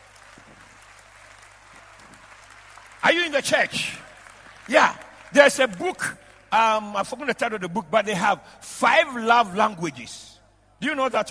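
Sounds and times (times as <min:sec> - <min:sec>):
audience clapping hands: 0:00.0 - 0:07.6
speech: 0:03.0 - 0:04.1, 0:04.7 - 0:11.2.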